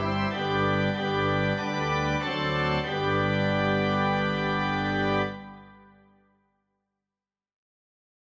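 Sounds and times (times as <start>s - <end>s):
organ: 0.0s - 6.2s.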